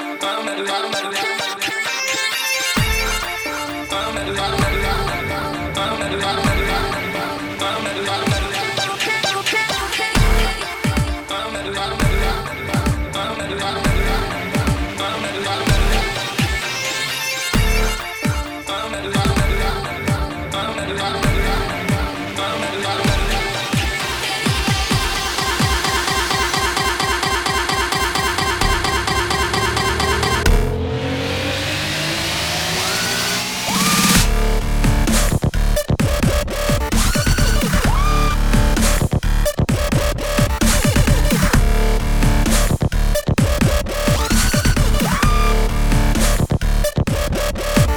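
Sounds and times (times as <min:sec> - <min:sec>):
rough dubstep music: 0:00.1 - 0:47.9.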